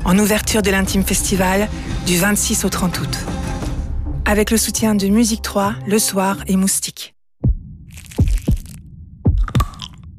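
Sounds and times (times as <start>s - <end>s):
speech: 0.1s - 3.4s, 4.3s - 7.2s
heartbeat sound effect: 7.4s - 9.8s.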